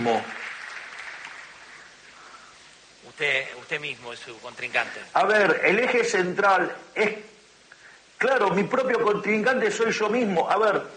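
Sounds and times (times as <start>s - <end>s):
speech: 0.0s - 0.4s, 3.2s - 7.3s, 8.2s - 10.9s
crowd clapping: 0.0s - 2.0s.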